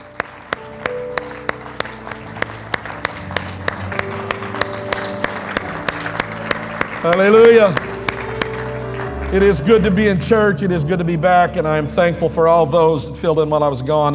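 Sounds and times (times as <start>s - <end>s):
crowd noise: 0.0s - 9.2s
audience clapping in rhythm: 0.0s - 9.8s
organ-like musical tones: 0.0s - 11.8s
speech: 7.0s - 7.9s, 9.3s - 14.1s.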